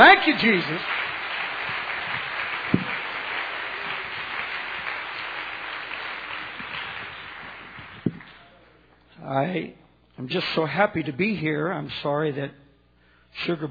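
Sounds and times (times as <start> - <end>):
audience clapping hands: 0.0 - 8.7
speech: 0.2 - 1.0, 9.3 - 12.6, 13.3 - 13.6.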